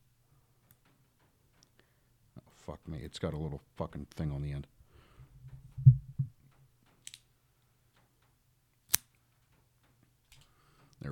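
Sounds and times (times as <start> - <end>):
speech: 2.6 - 4.8
cutter snipping a Dunbarton Tobacco Red Meat Lover's cigar: 8.9 - 9.1.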